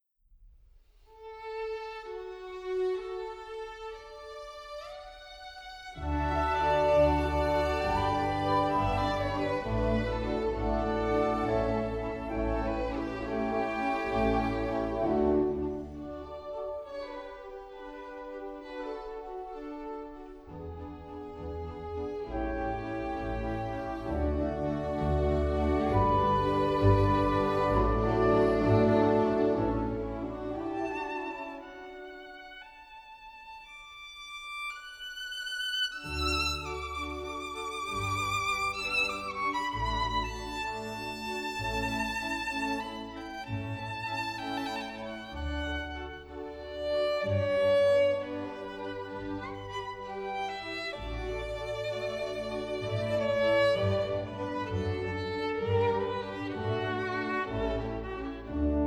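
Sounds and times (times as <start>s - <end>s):
violin in G major: 1.1s - 58.8s.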